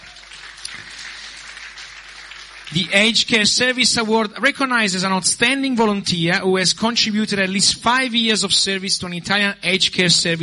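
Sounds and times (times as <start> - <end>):
audience applause at an aged care service award ceremony: 0.0 - 4.2
speech: 2.7 - 10.4.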